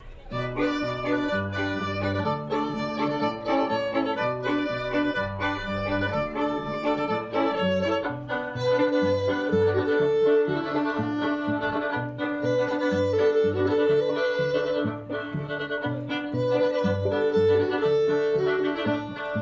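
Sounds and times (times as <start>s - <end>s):
live strings playing: 0.0s - 19.3s.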